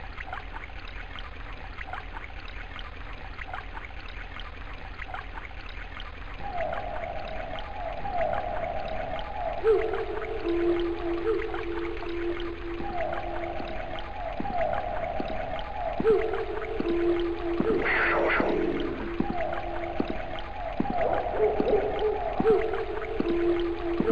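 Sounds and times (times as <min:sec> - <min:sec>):
ambience: 0:05.2 - 0:24.1.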